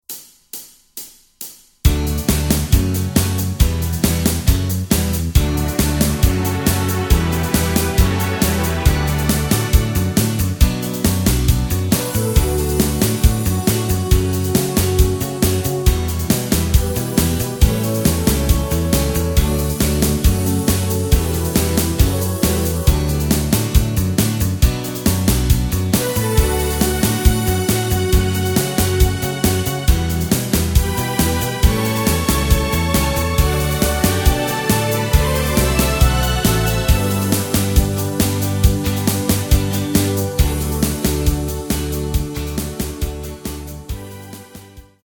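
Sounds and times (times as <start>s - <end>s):
backing track in D without lead guitar: 1.8s - 44.9s.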